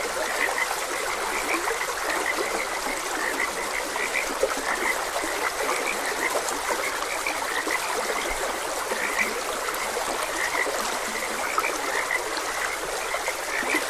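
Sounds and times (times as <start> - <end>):
frogs croaking in a chorus: 0.0 - 13.8
stream rushing and trickling: 0.0 - 13.8.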